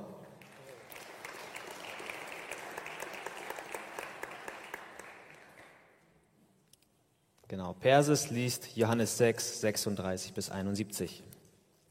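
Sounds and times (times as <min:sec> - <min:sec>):
audience applause: 0:00.4 - 0:05.9
speech: 0:07.5 - 0:11.3.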